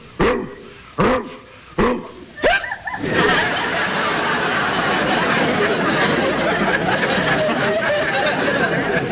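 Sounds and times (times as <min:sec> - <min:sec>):
man imitating a Saint Bernard dog barking: 0:00.0 - 0:02.7
audience laughter: 0:01.9 - 0:09.1.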